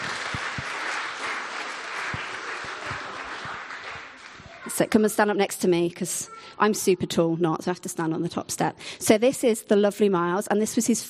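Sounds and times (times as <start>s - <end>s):
audience applause: 0.0s - 4.8s
speech: 4.8s - 11.0s.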